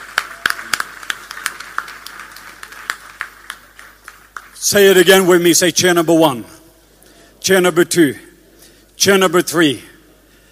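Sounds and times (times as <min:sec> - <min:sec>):
audience applause: 0:00.0 - 0:04.6
speech: 0:04.6 - 0:06.6, 0:07.4 - 0:08.3, 0:09.0 - 0:09.9.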